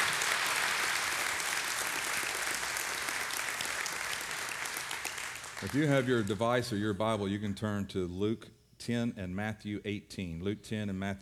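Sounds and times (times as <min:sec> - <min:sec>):
audience applause: 0:00.0 - 0:06.4
speech: 0:05.6 - 0:11.2.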